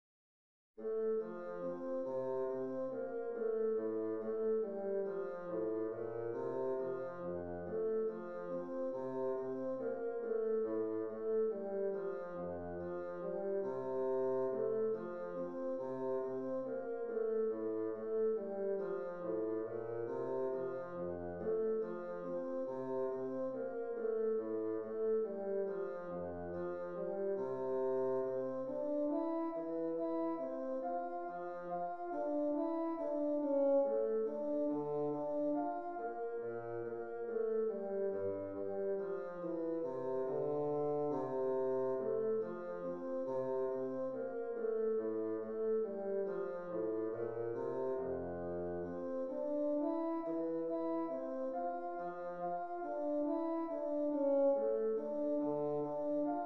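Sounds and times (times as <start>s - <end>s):
gavotte: 0.8s - 56.4s.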